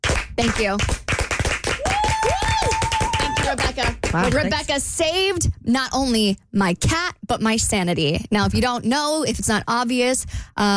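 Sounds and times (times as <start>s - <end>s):
slow clap: 0.0s - 4.4s
speech: 0.4s - 1.0s, 3.5s - 10.7s.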